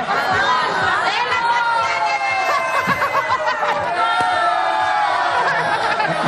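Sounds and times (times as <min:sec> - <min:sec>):
audience shouting to win a pillow: 0:00.0 - 0:06.2
laughter: 0:02.5 - 0:04.1, 0:05.3 - 0:06.2.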